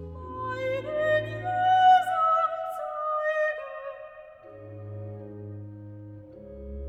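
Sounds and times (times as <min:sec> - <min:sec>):
person singing recitative: 0:00.0 - 0:04.9.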